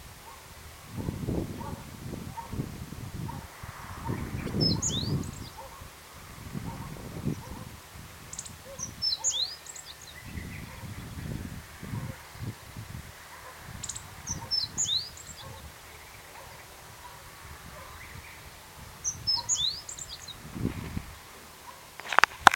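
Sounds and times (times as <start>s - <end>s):
meadow bunting: 1.6s - 22.5s.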